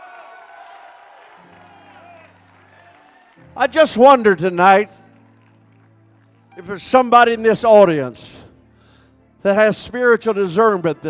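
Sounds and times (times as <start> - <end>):
church congregation shouting praise to the Lord: 0.0 - 5.4
people clapping: 0.0 - 6.8
speech: 3.6 - 5.0, 6.6 - 8.4, 9.4 - 11.0.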